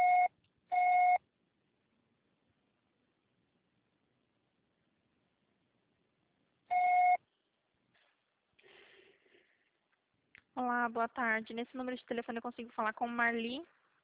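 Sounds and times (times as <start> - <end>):
answering machine beeps: 0.0 - 1.2, 6.7 - 7.2
speech: 10.9 - 13.8.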